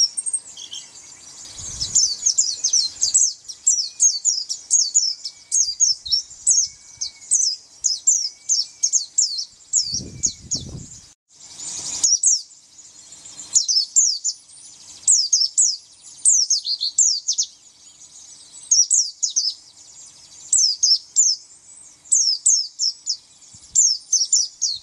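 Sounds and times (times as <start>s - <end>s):
white-eye twittering song: 0.0s - 24.8s.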